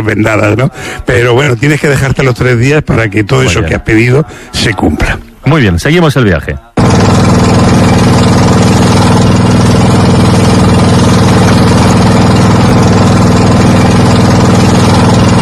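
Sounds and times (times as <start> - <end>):
speech: 0.0 - 7.2
boat motor running during a river trip in Laos: 6.8 - 15.3.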